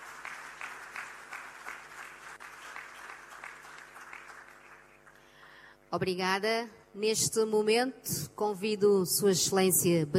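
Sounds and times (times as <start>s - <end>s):
audience applause: 0.0s - 5.2s
speech: 5.9s - 10.1s.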